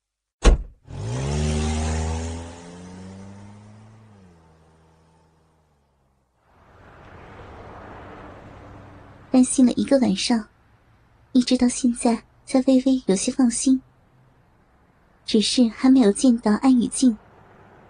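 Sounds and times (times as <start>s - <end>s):
sharp knock: 0.4s - 0.8s
car engine revving: 0.8s - 9.6s, 17.2s - 17.8s
road noise: 0.8s - 17.8s
speech: 9.4s - 10.5s, 11.4s - 13.9s, 15.3s - 17.2s.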